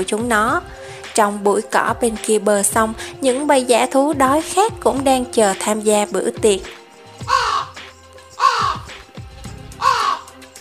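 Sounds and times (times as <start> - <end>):
speech: 0.0 - 7.4
black crow cawing: 7.2 - 7.8, 8.4 - 8.9, 9.8 - 10.4.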